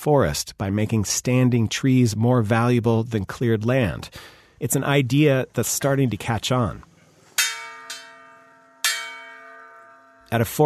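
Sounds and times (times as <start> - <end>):
speech: 0.0 - 6.9, 10.3 - 10.6
brass bell rung by the Munduruku chief to call a community meeting: 7.4 - 10.6.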